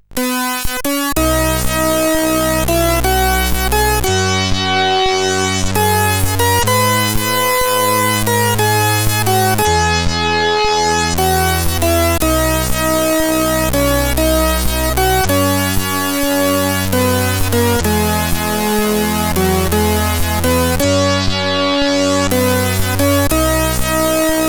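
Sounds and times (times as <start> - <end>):
SID chiptune music on a CSG8580R5 chip: 0.0 - 24.4.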